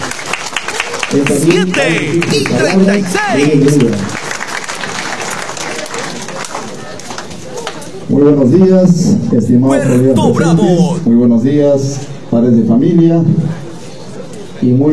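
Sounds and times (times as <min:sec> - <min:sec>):
audience applause: 0:00.0 - 0:06.7, 0:09.8 - 0:11.0
speech: 0:01.1 - 0:04.2, 0:08.1 - 0:13.6, 0:14.6 - 0:14.9.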